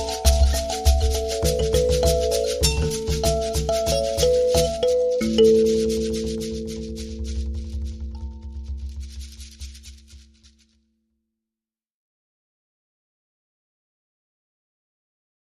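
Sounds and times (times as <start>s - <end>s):
thumb piano rhythm: 0.0s - 8.8s.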